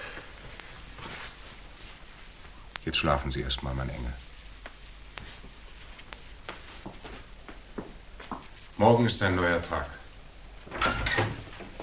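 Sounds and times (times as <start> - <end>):
soft scraping rustle: 0.0 - 8.9
speech: 2.8 - 4.2, 8.8 - 10.0
door creaking open: 10.7 - 11.8.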